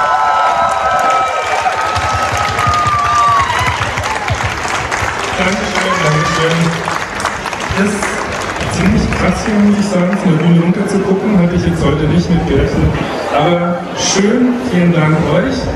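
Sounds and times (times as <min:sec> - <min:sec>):
audience applause: 0:00.0 - 0:11.0
speech: 0:07.8 - 0:08.1, 0:08.8 - 0:15.7.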